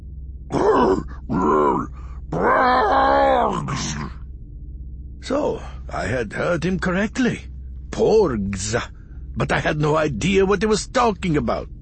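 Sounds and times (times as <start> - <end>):
low steady hum: 0.0 - 11.7
Wookiee growls: 0.5 - 4.2
speech: 5.3 - 11.7.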